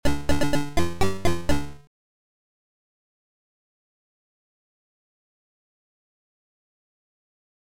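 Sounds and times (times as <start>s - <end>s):
minuet: 0.0s - 1.8s.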